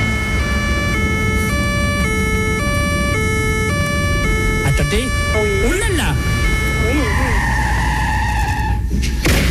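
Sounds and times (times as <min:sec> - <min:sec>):
police car siren passing: 0:00.0 - 0:09.0
road noise rumble: 0:00.0 - 0:09.4
speech: 0:04.9 - 0:06.3.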